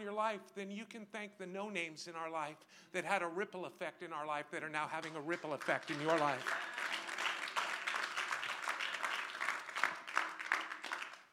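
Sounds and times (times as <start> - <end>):
speech: 0.1 - 6.8
scattered thin applause from a small audience: 4.9 - 11.3.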